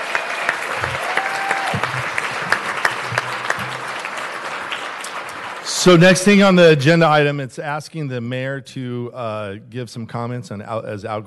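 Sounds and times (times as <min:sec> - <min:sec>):
audience applause: 0:00.0 - 0:06.6
speech: 0:05.8 - 0:11.2.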